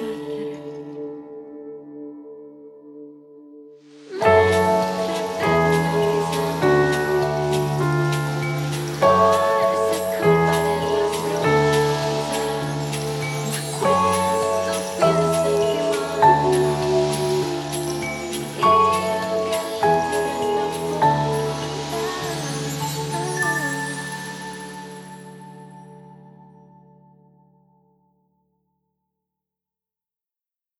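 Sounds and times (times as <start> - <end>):
keyboard: 0.0 - 28.3
percussion: 3.9 - 26.0.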